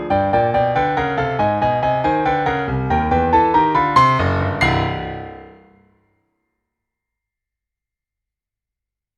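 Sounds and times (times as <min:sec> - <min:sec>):
8-bit blues music: 0:00.0 - 0:05.8.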